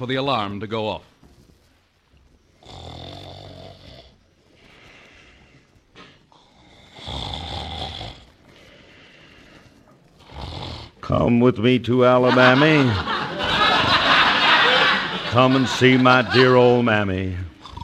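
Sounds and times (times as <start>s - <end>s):
speech: 0.0s - 1.1s, 11.1s - 13.2s, 15.3s - 17.5s
softer wheezy breathing of sleeping man: 2.5s - 11.0s
man snoring in his sleep: 2.6s - 4.2s, 6.3s - 8.4s, 10.2s - 11.0s, 17.4s - 17.8s
laughter: 11.9s - 17.5s.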